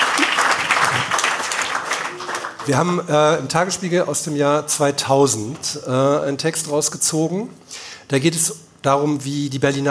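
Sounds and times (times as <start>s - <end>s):
audience applause: 0.0s - 2.8s
speech: 2.7s - 9.8s.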